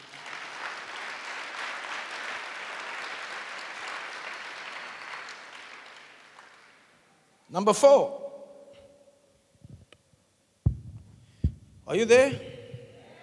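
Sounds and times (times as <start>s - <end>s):
audience applause: 0.0s - 6.9s
speech: 7.5s - 8.2s, 11.9s - 12.5s.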